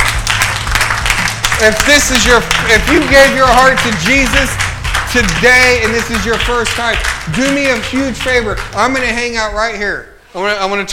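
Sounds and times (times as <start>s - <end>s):
church congregation clapping hands after a prayer: 0.0s - 9.7s
speech: 1.6s - 10.9s.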